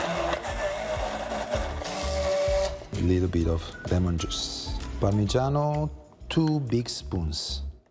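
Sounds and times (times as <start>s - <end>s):
blender motor blending Caesar dressing with anchovy paste and garlic: 0.0s - 2.8s
speech: 3.0s - 7.7s.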